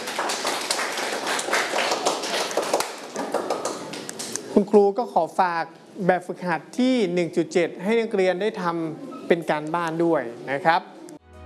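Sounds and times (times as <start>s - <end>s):
students clapping in a classroom: 0.0s - 4.5s
speech: 4.6s - 10.9s.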